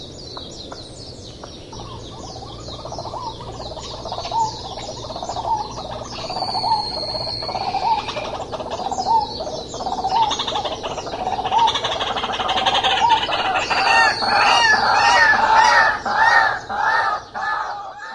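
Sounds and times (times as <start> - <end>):
White-breasted waterhen harsh nasal croaking calls: 0.0 - 18.1
high insect hum: 0.0 - 18.1.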